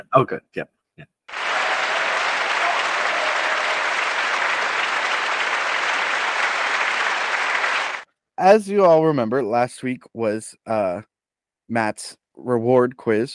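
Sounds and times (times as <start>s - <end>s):
speech: 0.0s - 1.1s, 8.4s - 11.1s, 11.7s - 13.3s
applause sound effect: 1.3s - 8.0s.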